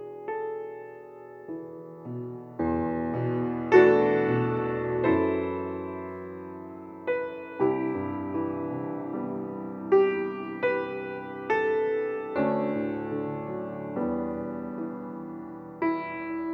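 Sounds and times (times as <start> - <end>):
Celtic piano music: 0.0 - 16.5.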